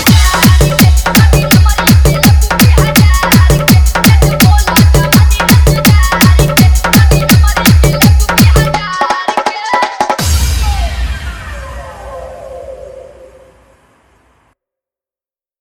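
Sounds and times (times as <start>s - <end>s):
hard dholak dance mix: 0.0s - 10.9s.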